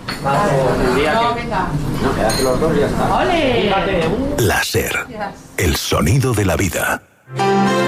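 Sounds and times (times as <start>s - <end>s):
speech: 0.2s - 7.7s
dishes and cutlery clinking in a café in Logroño: 2.3s - 2.6s
people chattering in a café: 4.4s - 7.2s.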